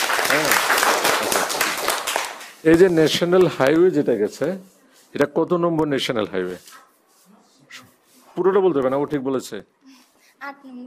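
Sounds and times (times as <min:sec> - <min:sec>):
audience applause for two quiz contestants: 0:00.0 - 0:02.6
speech: 0:02.6 - 0:06.9, 0:08.4 - 0:09.8, 0:10.4 - 0:10.8.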